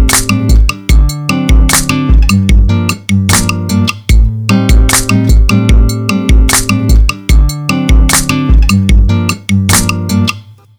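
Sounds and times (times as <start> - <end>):
smooth latin music: 0.0 - 10.7.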